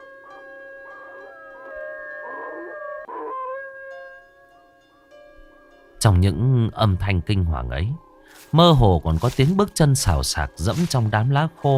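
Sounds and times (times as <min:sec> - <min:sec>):
neighbour's dog barking and howling: 0:00.0 - 0:04.2
speech: 0:06.0 - 0:11.7.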